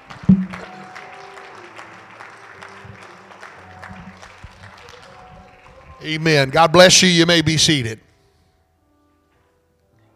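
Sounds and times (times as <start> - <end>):
audience clapping hands: 0.0 - 7.0
speech: 6.0 - 8.0.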